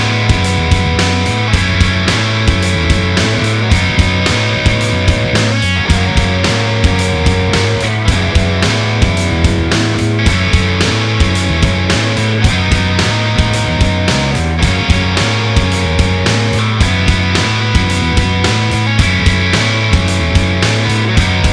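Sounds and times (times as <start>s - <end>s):
backing music: 0.0s - 21.5s.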